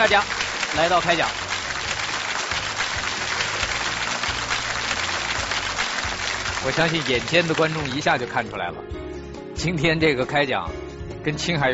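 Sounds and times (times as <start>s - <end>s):
speech: 0.0s - 1.5s, 6.6s - 9.0s, 9.6s - 11.7s
audience applause: 0.0s - 8.2s.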